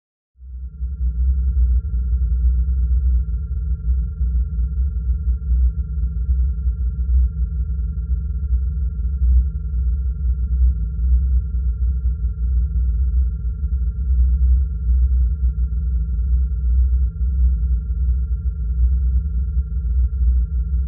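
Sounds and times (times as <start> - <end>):
spaceship control room ambience: 0.4 - 20.8.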